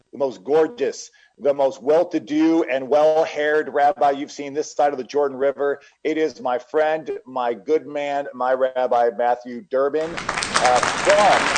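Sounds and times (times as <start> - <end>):
speech: 0.2 - 11.5
crowd applauding: 10.0 - 11.5.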